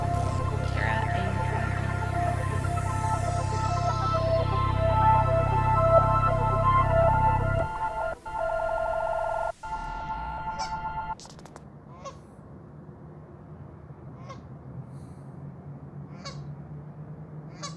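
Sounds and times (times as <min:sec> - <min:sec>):
steady low rumble in a river valley: 0:00.0 - 0:11.2.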